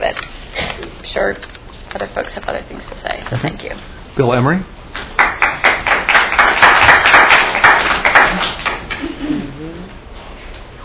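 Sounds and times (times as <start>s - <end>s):
speech: 1.2s - 4.8s
group of people clapping: 4.9s - 9.1s.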